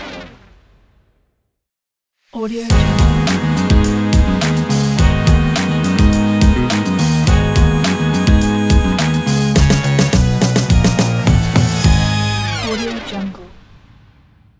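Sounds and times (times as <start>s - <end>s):
retro funk logo jingle: 2.7s - 13.1s.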